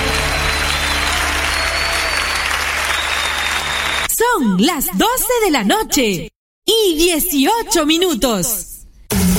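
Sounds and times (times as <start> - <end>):
audience applauding: 0.0 - 4.1
speech: 4.4 - 9.2.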